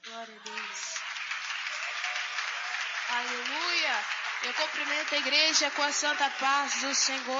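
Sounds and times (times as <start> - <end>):
church congregation applauding: 0.0 - 7.3
speech: 0.2 - 1.0, 3.1 - 7.3.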